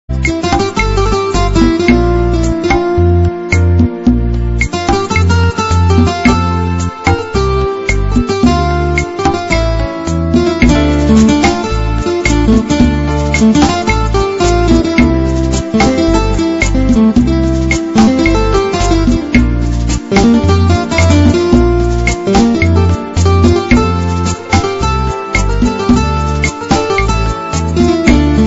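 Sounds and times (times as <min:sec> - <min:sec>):
Spanish guitar: 0:00.1 - 0:28.4.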